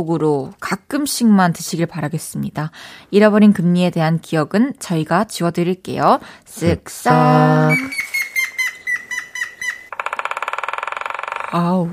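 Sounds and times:
speech: 0:00.0 - 0:08.2, 0:11.5 - 0:11.9
whistled bird calls: 0:07.7 - 0:09.9
woodpecker drumming: 0:07.7 - 0:11.6.

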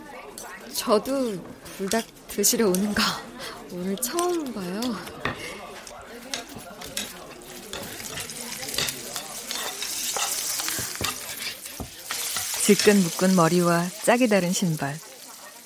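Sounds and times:
speech: 0:00.7 - 0:05.4, 0:12.7 - 0:15.1
rice being stir-fried in a pan: 0:06.2 - 0:15.6.

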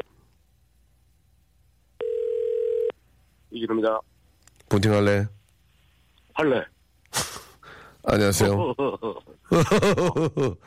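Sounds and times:
telephone dial tone while placing call: 0:02.0 - 0:02.9
speech: 0:03.6 - 0:04.1, 0:04.7 - 0:05.4, 0:06.4 - 0:07.3, 0:08.0 - 0:10.6
laughter: 0:08.3 - 0:10.6.

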